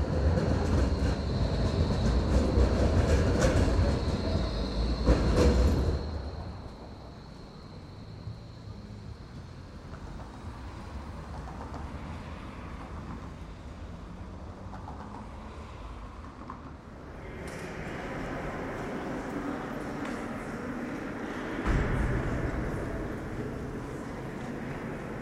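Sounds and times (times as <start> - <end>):
Berlin city ambience: 0.0 - 25.2.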